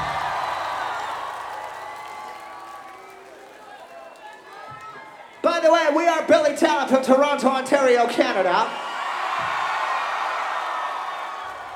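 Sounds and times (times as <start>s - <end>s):
concert crowd clapping and cheering: 0.0s - 5.9s, 8.8s - 11.7s
speech: 5.6s - 8.8s.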